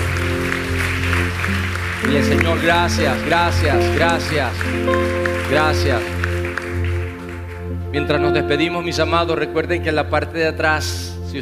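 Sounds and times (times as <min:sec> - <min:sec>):
people applauding: 0:00.0 - 0:09.1
speech: 0:02.1 - 0:06.2, 0:07.9 - 0:11.3.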